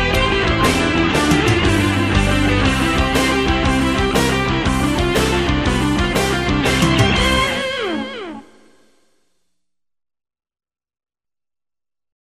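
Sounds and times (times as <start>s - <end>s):
metal version of a chorale: 0.0s - 8.9s.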